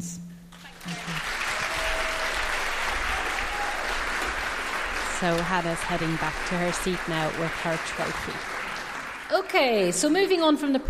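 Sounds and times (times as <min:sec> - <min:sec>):
round of applause from audience: 0:00.6 - 0:10.1
speech: 0:05.2 - 0:08.5, 0:09.3 - 0:10.8.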